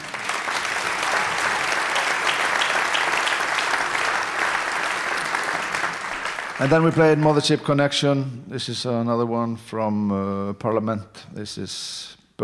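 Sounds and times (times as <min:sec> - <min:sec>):
audience applause: 0:00.0 - 0:07.6
speech: 0:06.6 - 0:12.4.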